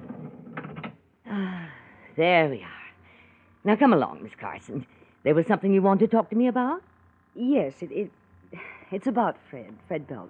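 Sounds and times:
sticking elevator door grinding open: 0:00.0 - 0:00.9
speech: 0:02.2 - 0:02.8, 0:03.6 - 0:10.2.

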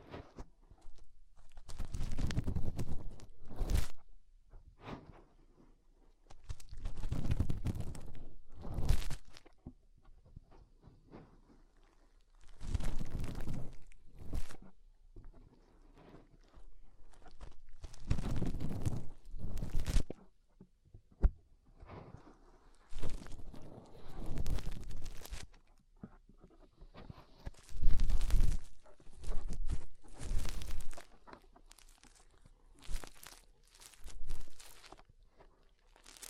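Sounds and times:
fingers rubbing and pressing inside the ear: 0:01.5 - 0:04.0, 0:06.4 - 0:09.5, 0:12.4 - 0:14.7, 0:16.7 - 0:20.2, 0:22.2 - 0:25.6, 0:26.8 - 0:35.0.

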